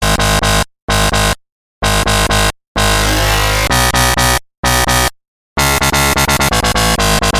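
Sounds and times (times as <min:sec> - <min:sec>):
reptile bass: 0:00.0 - 0:07.3.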